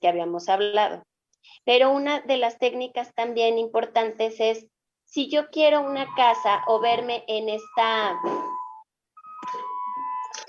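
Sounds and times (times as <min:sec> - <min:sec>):
speech: 0:00.0 - 0:08.5
doorbell ringing: 0:06.0 - 0:10.4.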